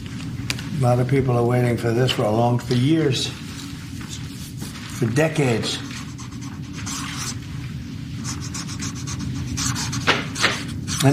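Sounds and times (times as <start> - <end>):
speech: 0.8 - 3.4, 5.0 - 5.9
Sharpie marker writing across paper: 5.8 - 7.4, 8.2 - 11.1.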